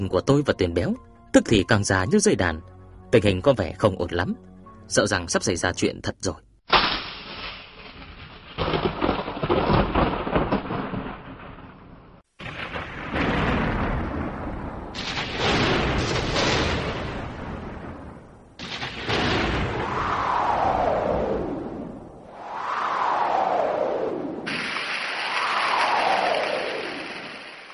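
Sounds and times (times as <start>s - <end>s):
speech: 0.0s - 6.8s
rolling thunder: 8.4s - 27.5s
howling wind: 17.2s - 27.5s.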